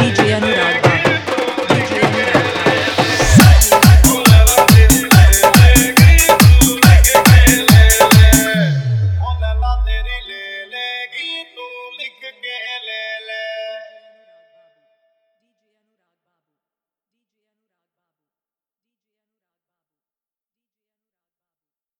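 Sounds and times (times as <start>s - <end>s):
dholak dance mix: 0.0s - 9.5s.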